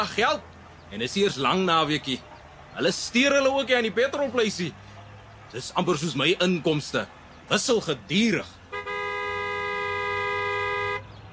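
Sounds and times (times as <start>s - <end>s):
speech: 0.0s - 4.8s, 5.5s - 8.6s
car horn honking at a petrol station: 8.6s - 11.3s.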